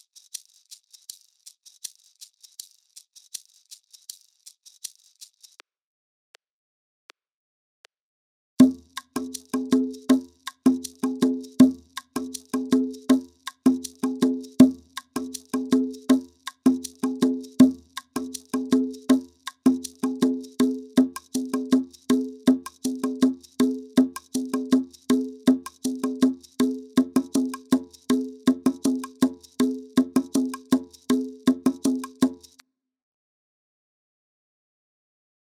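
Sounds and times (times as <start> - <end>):
Latin American music at 80 bpm: 8.6 - 32.5.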